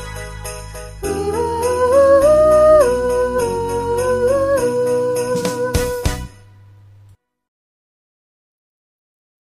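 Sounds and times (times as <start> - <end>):
alto middle part: 1.0 - 6.1.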